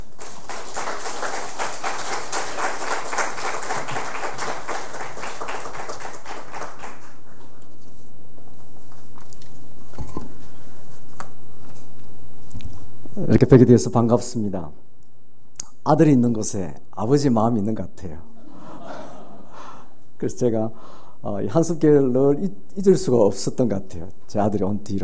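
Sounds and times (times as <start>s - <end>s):
audience applauding: 0.0s - 7.2s
speech: 13.3s - 14.8s, 15.9s - 18.3s, 20.2s - 25.0s.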